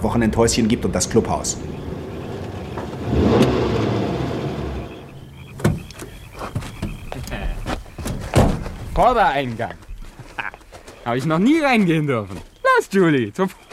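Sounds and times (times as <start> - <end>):
speech: 0.0 - 1.9, 9.0 - 9.9, 11.1 - 13.6
car roaring past at speed: 0.1 - 6.3.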